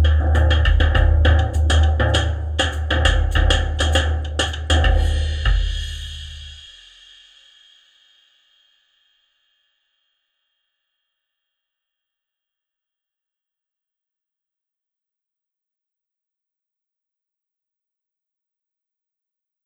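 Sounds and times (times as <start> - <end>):
Slingerland drums: 0.0 - 7.9.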